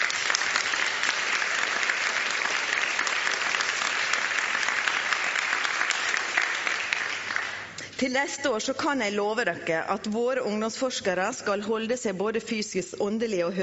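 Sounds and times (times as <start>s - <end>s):
audience applause: 0.0s - 7.8s
speech: 8.0s - 13.6s.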